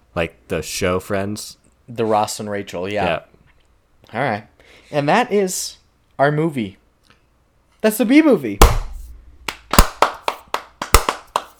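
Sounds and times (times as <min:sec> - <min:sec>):
speech: 0:00.2 - 0:03.3, 0:04.0 - 0:06.8, 0:07.8 - 0:08.8
big hand claps: 0:08.6 - 0:11.5.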